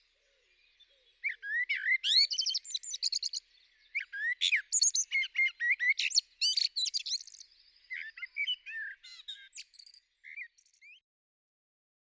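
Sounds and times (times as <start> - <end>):
blackbird singing: 0.0 - 11.0.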